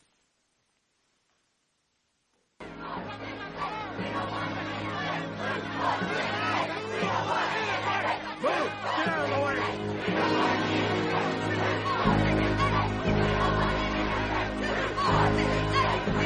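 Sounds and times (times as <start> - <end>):
hostile crowd shouting and jeering: 2.6 - 16.2
laughter: 2.8 - 16.2.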